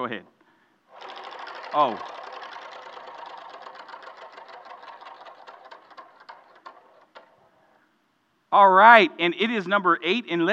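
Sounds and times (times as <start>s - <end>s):
speech: 0.0s - 0.4s, 1.7s - 2.2s, 8.5s - 10.5s
prize wheel ticking while spun: 0.9s - 7.7s.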